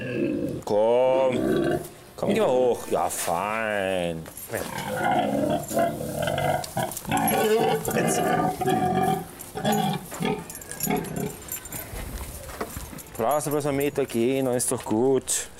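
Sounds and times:
pregnant sow grunting: 0:00.0 - 0:02.6, 0:04.6 - 0:11.8
speech: 0:00.7 - 0:01.5, 0:02.2 - 0:10.0, 0:13.2 - 0:15.5.

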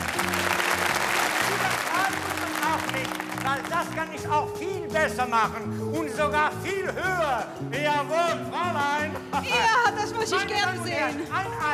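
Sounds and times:
audience clapping: 0:00.0 - 0:04.3
speech: 0:03.6 - 0:11.7.

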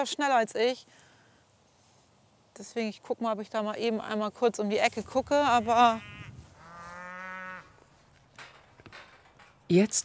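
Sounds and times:
speech: 0:00.0 - 0:01.0, 0:02.6 - 0:06.1, 0:09.7 - 0:10.0
cattle mooing in a herd with a breeding bull: 0:05.4 - 0:07.8.

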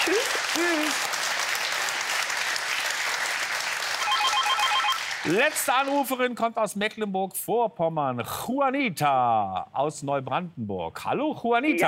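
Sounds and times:
crowd applause: 0:00.0 - 0:06.1
faint repeating high electronic ringing tone: 0:04.0 - 0:05.0
speech: 0:05.2 - 0:11.8.

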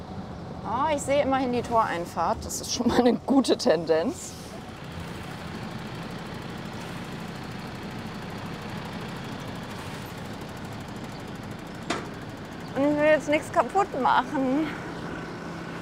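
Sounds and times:
speech: 0:00.7 - 0:04.4, 0:13.2 - 0:14.8
car engine idling while shifting into reverse: 0:03.5 - 0:15.8.

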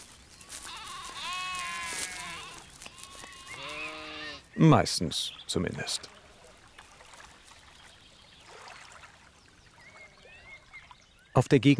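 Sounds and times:
sheep bleating: 0:00.5 - 0:04.5
speech: 0:04.6 - 0:06.2, 0:11.4 - 0:11.7.

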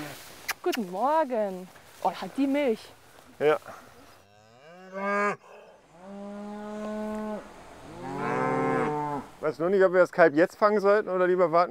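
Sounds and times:
speech: 0:00.6 - 0:03.9, 0:04.9 - 0:05.4, 0:09.4 - 0:11.6
mother cow mooing beside her young calf: 0:04.2 - 0:09.3.

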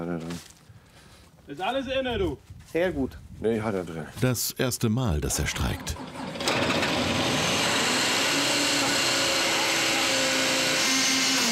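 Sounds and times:
speech: 0:01.5 - 0:06.2
faulty hydraulic pump or auxiliary drive bearing screeching: 0:06.0 - 0:11.5.

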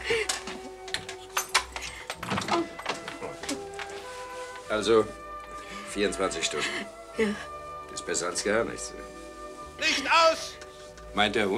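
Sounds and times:
door being closed: 0:01.7 - 0:03.8
speech: 0:04.7 - 0:05.2, 0:06.0 - 0:09.2, 0:09.8 - 0:11.5.

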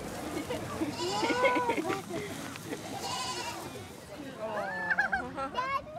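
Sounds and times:
laughter: 0:00.1 - 0:03.3, 0:04.2 - 0:05.9
goats bleating: 0:00.8 - 0:01.8, 0:02.9 - 0:03.7.

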